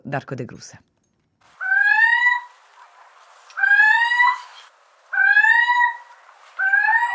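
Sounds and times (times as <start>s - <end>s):
little owl calling: 1.6s - 7.1s.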